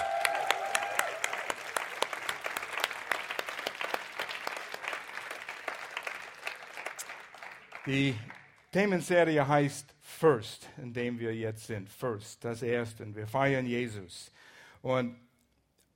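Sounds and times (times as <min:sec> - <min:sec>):
crowd whooping or whistling: 0:00.0 - 0:01.7
crowd applauding: 0:00.0 - 0:08.6
speech: 0:07.9 - 0:15.2.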